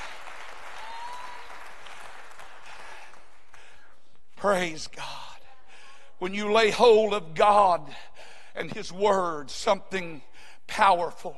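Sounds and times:
crowd clapping: 0:00.0 - 0:03.8
speech: 0:04.4 - 0:05.2, 0:06.2 - 0:11.3.

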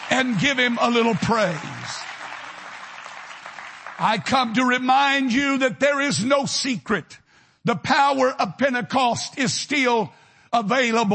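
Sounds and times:
audience clapping hands: 0:00.0 - 0:05.2
speech: 0:00.1 - 0:02.0, 0:04.0 - 0:11.1.

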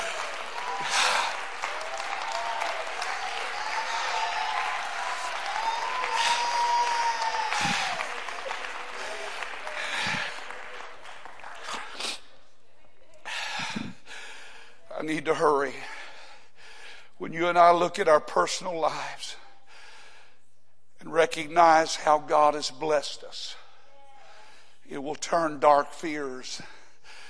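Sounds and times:
audience clapping hands: 0:00.0 - 0:12.3
speech: 0:15.2 - 0:15.9, 0:17.3 - 0:19.3, 0:21.2 - 0:23.6, 0:24.9 - 0:26.7.

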